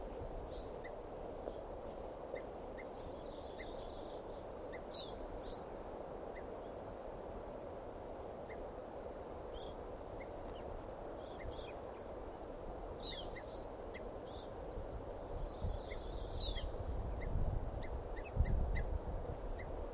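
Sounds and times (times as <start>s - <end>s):
hiss: 0.0s - 19.9s
several birds chirping: 2.3s - 6.8s, 9.5s - 12.1s, 13.0s - 14.5s, 15.3s - 19.8s.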